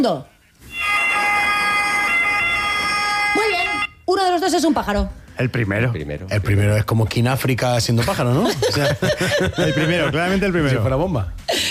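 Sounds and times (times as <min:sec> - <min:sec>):
speech: 0:00.0 - 0:00.3, 0:04.1 - 0:11.6
ambulance siren wailing: 0:00.6 - 0:04.0
laughter: 0:07.9 - 0:10.9.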